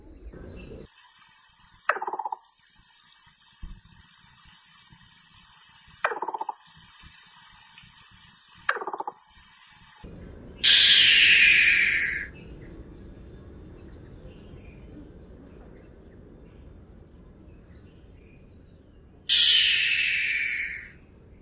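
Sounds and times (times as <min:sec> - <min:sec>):
crow pheasant calling: 0:10.6 - 0:12.3, 0:19.3 - 0:20.9.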